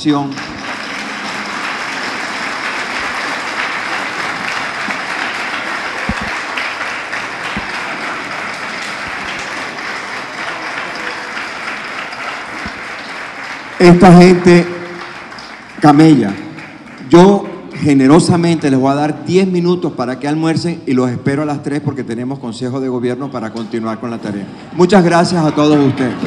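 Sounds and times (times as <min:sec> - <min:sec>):
speech: 0:00.0 - 0:00.4, 0:13.8 - 0:14.8, 0:15.8 - 0:16.4, 0:17.1 - 0:26.2
audience applause: 0:00.0 - 0:18.8, 0:24.8 - 0:26.2
laughter: 0:23.4 - 0:26.2.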